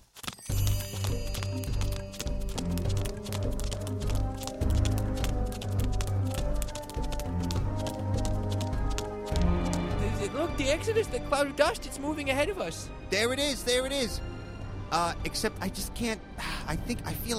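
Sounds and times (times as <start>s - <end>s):
running footsteps in a radio play: 0.0s - 10.8s
speech: 10.6s - 14.3s, 14.9s - 17.3s.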